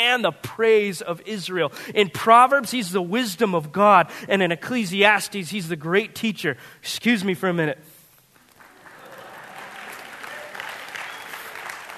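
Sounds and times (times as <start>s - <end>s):
speech: 0.0s - 7.9s
audience applause: 8.4s - 11.9s.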